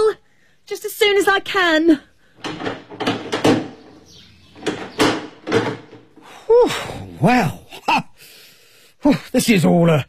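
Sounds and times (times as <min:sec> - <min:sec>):
speech: 0:00.7 - 0:02.1, 0:06.6 - 0:08.0, 0:09.0 - 0:10.0
door being unlocked, rattling clunks and knocks: 0:02.4 - 0:06.3.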